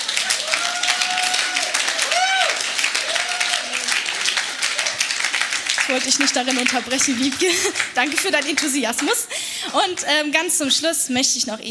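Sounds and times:
laughter: 0:00.0 - 0:10.1
audience clapping: 0:00.0 - 0:10.2
speech: 0:05.9 - 0:11.6.

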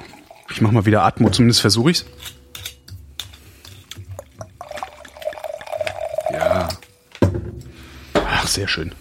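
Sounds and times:
wine pouring into a glass: 0:00.0 - 0:01.2, 0:04.1 - 0:06.8
speech: 0:00.5 - 0:02.4, 0:08.6 - 0:08.9
glass clinking: 0:01.2 - 0:07.0.

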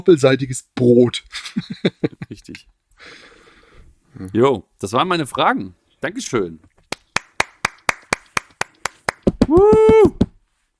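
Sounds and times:
speech: 0:00.0 - 0:03.3, 0:04.2 - 0:06.7
applause: 0:06.9 - 0:09.5.

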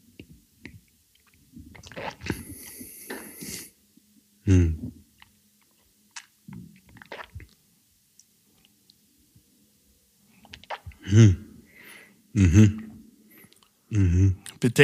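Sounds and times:
mouth smacks chewing a sip of 64% rum at a tasting: 0:00.2 - 0:03.7, 0:05.2 - 0:07.6, 0:10.4 - 0:11.0
hum-like voiced bursts: 0:04.4 - 0:05.0, 0:11.0 - 0:11.6, 0:13.9 - 0:14.4.

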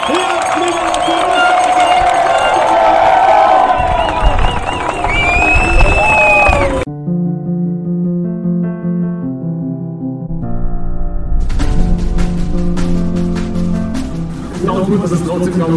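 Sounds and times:
crowd cheering and whooping: 0:00.0 - 0:06.9
tonal music: 0:06.8 - 0:15.7.

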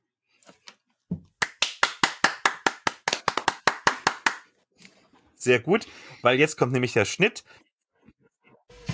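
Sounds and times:
hand clapping: 0:01.4 - 0:04.5
speech: 0:05.4 - 0:07.7.

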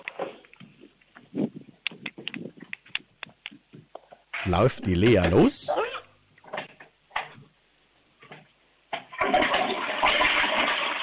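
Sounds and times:
speech: 0:04.5 - 0:05.8
loud toilet flush: 0:09.1 - 0:11.0.

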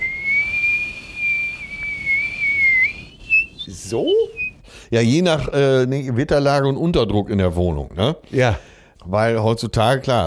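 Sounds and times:
person whistling an imitation of wind noise: 0:00.0 - 0:04.7
speech: 0:03.9 - 0:10.2.

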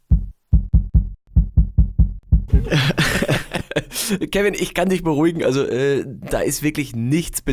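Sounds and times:
heartbeat through a microphone held against the neck: 0:00.0 - 0:02.8
laughter: 0:02.5 - 0:05.5
speech: 0:02.7 - 0:03.0, 0:04.1 - 0:07.5.

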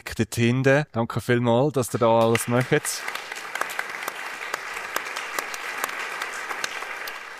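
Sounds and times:
speech: 0:00.2 - 0:03.2
audience applause: 0:02.2 - 0:07.3.

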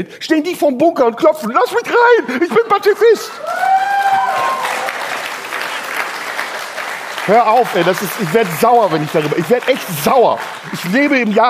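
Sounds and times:
speech: 0:00.0 - 0:03.8, 0:07.3 - 0:11.4
audience applause: 0:03.4 - 0:11.4.

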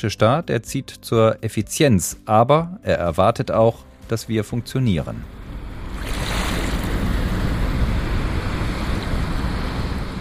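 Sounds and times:
speech: 0:00.0 - 0:05.4
gusty wind noise: 0:05.2 - 0:10.1
Rhine river water flowing in Bonn: 0:05.3 - 0:10.1.

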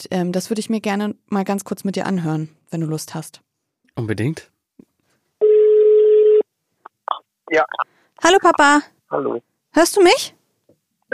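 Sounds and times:
speech: 0:00.0 - 0:04.5, 0:07.5 - 0:10.4
telephone call ringing tone: 0:05.4 - 0:06.4.

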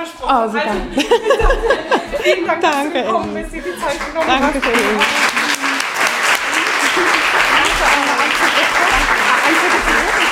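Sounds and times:
speech: 0:00.2 - 0:05.4
laughter: 0:00.7 - 0:10.3
audience applause: 0:03.8 - 0:10.3.

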